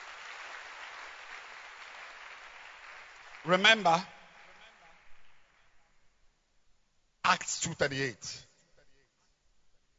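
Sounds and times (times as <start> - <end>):
audience clapping hands: 0.0 - 6.0
speech: 3.4 - 4.2, 7.7 - 8.5.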